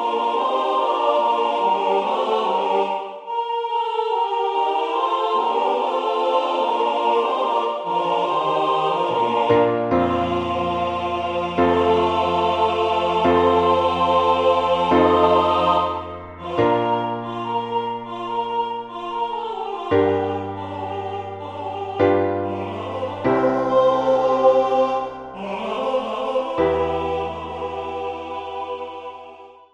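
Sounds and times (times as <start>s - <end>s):
MIDI SSATB choral parts: 0.0s - 29.7s.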